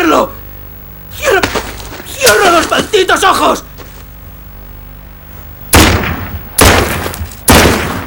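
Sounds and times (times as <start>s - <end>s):
speech: 0.2s - 0.4s, 2.8s - 3.7s
revolver gunshots: 5.7s - 8.0s.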